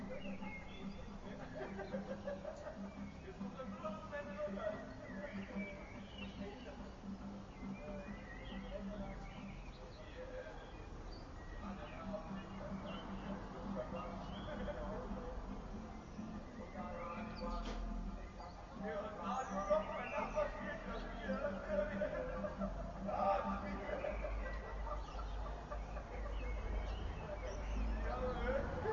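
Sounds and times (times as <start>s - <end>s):
laughter: 0.0s - 6.9s, 11.6s - 15.6s, 18.7s - 28.9s
music making in a courtyard: 0.0s - 28.9s.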